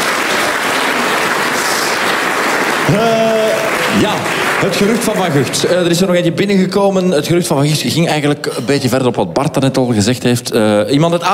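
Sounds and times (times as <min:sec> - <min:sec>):
audience applause: 0:00.0 - 0:06.3
speech: 0:02.9 - 0:11.3.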